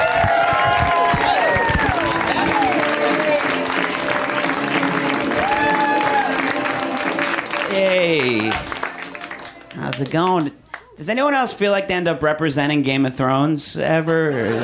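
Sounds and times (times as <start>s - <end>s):
audience clapping: 0.0s - 11.0s
speech: 10.0s - 14.6s.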